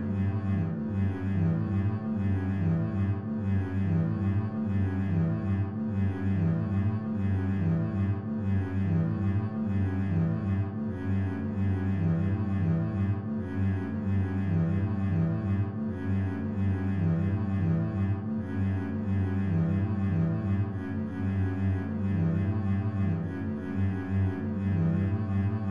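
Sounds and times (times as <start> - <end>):
bass etude: 0.0 - 25.7.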